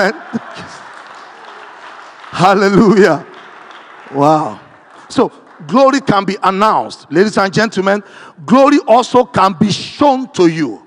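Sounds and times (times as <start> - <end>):
speech: 0.0 - 0.8, 2.3 - 3.3, 4.1 - 10.8
audience clapping: 0.0 - 7.2.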